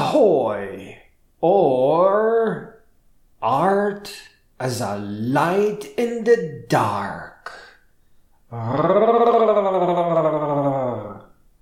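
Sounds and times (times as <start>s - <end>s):
speech: 0.2s - 2.7s, 3.4s - 7.6s, 8.5s - 10.4s
low growl: 8.5s - 11.3s.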